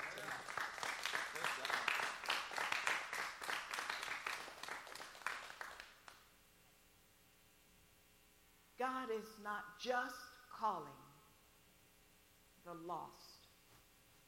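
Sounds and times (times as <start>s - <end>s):
audience applause: 0.0s - 6.2s
speech: 8.8s - 11.1s, 12.7s - 13.3s.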